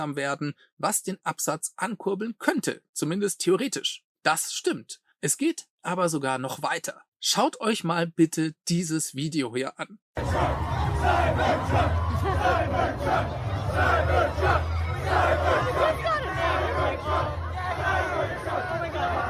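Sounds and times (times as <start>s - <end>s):
speech: 0.0s - 17.4s
crowd of young people cheering and shouting, celebrating a car: 10.2s - 19.2s.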